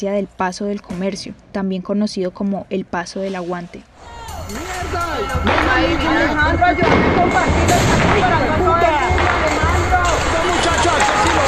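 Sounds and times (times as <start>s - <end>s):
speech: 0.0s - 9.1s
protest crowd shouting in Siloé, Cali: 4.0s - 11.4s
gunshots during a protest in Siloé, Cali: 4.5s - 11.4s.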